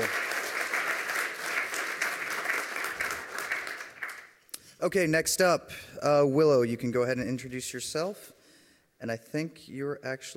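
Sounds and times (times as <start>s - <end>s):
audience applause: 0.0s - 4.4s
speech: 4.8s - 8.4s, 9.0s - 10.3s.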